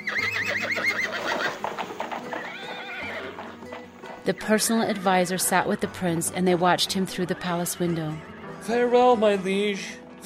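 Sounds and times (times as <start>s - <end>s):
horse hooves clip-clopping as a king rides away from a city: 0.0s - 8.2s
horse neighing: 0.0s - 8.7s
speech: 4.2s - 10.2s.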